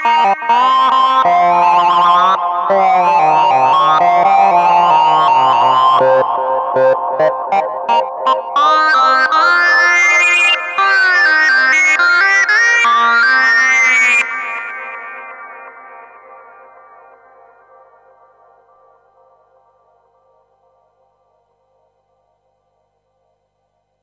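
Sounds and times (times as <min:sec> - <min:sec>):
synth lead through tc electronic Flashback X4 delay: 0:00.2 - 0:17.4.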